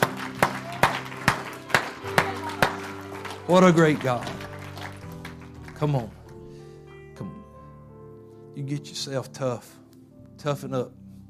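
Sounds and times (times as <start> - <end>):
audience clapping in unison: 0.0 - 6.6
speech: 3.5 - 4.4, 5.8 - 6.2, 8.6 - 9.8, 10.4 - 11.0.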